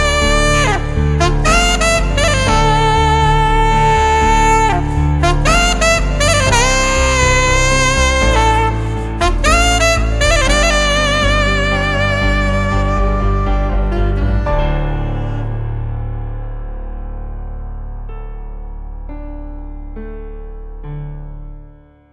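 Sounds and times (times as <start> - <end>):
saxophone: 0.0 - 16.4.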